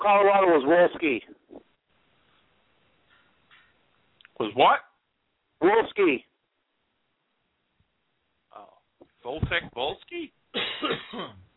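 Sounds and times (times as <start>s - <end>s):
speech: 0.0s - 1.4s, 4.4s - 4.8s, 5.6s - 6.3s, 9.2s - 11.4s
sneeze: 10.6s - 11.5s.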